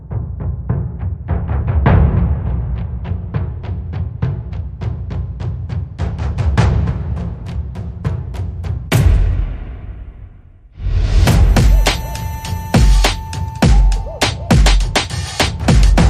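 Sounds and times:
drums: 0.0s - 10.2s, 10.8s - 16.0s
sound effects: 10.8s - 16.0s.

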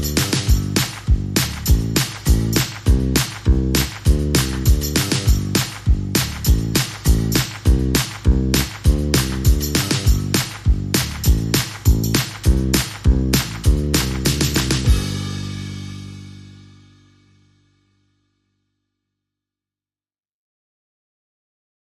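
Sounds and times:
drums: 0.0s - 17.1s
bass: 0.0s - 18.7s.

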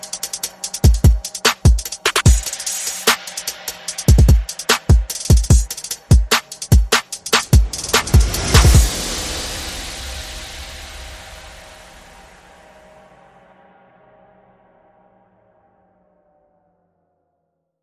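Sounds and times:
percussion: 0.0s - 12.8s
sound effects: 4.1s - 13.0s.

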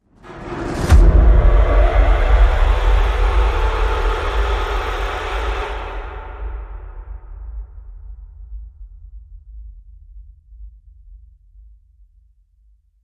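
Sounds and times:
horror hit: 0.2s - 8.2s.

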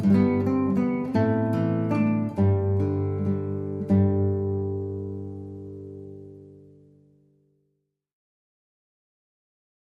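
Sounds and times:
solo guitar: 0.0s - 7.8s.

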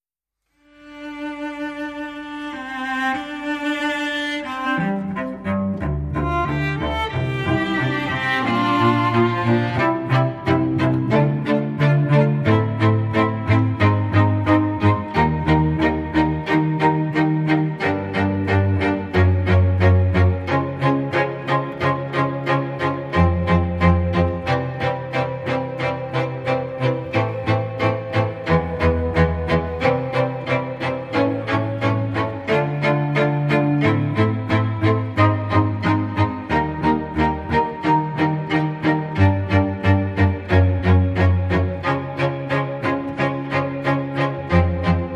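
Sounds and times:
string quartet: 0.6s - 45.1s.

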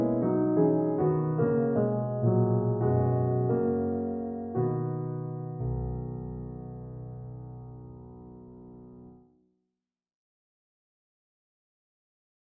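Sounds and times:
solo piano: 0.0s - 9.3s.

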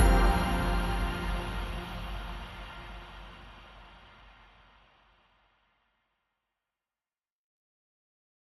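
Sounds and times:
music mix without lead synths: 0.0s - 3.7s.

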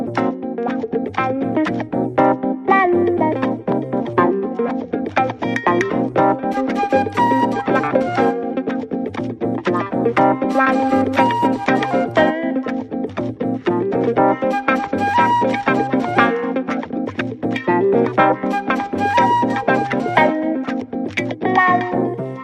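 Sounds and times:
guitar: 0.0s - 22.4s
keyboard: 0.0s - 22.4s
flute: 6.2s - 8.8s, 10.2s - 12.7s, 14.2s - 16.9s, 18.2s - 20.9s.

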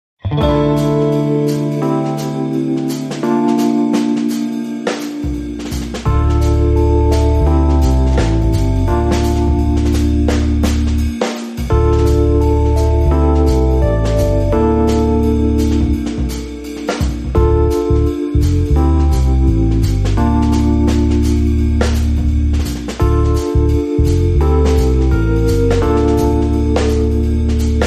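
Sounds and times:
lazy rhythm guitar: 0.2s - 27.8s.

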